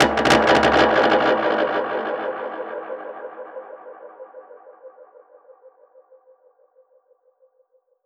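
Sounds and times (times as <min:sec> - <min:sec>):
dub percussion hit: 0:00.0 - 0:03.7.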